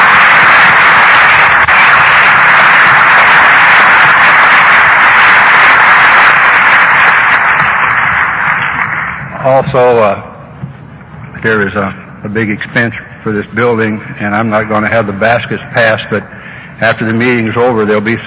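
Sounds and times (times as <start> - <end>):
audience applause: 0.0 - 9.8
speech: 9.4 - 10.3, 11.4 - 18.2.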